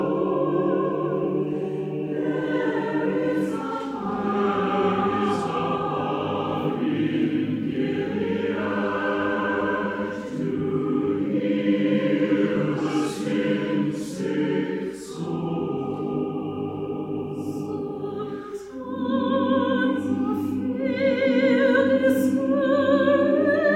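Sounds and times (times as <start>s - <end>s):
choral arrangement live performance: 0.0s - 23.7s.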